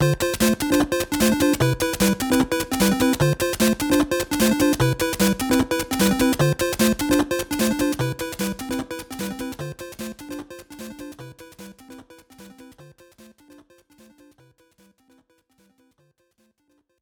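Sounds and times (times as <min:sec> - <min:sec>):
video game bonus screen background music: 0:00.0 - 0:12.8.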